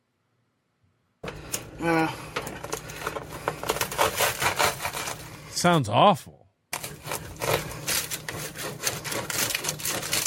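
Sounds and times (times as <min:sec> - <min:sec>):
speech: 0:01.8 - 0:02.2, 0:05.6 - 0:06.4
knife sawing through bread: 0:03.0 - 0:05.5, 0:06.8 - 0:10.2.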